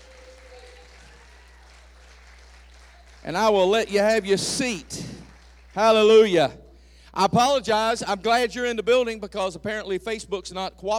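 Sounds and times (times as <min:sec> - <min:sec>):
audience hand clapping: 0:00.0 - 0:06.3
speech: 0:03.2 - 0:05.1, 0:05.8 - 0:10.9.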